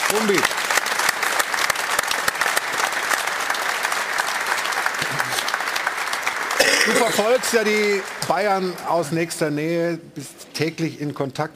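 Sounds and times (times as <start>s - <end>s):
applause: 0.0s - 9.4s
speech: 0.1s - 0.7s, 6.9s - 11.5s.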